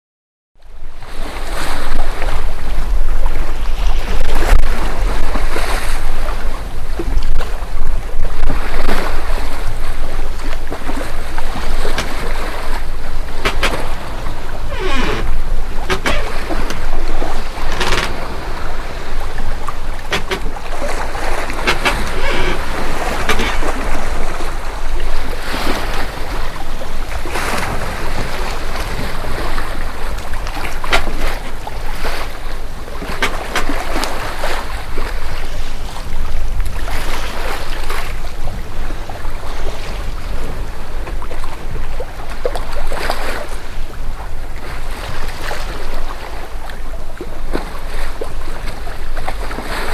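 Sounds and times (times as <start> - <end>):
sea waves: 0.6 - 49.9.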